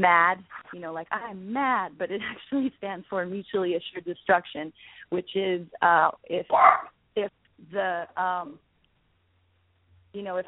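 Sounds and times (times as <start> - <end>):
speech: 0.0 - 8.6, 10.1 - 10.4
dogs barking at home: 6.5 - 6.9.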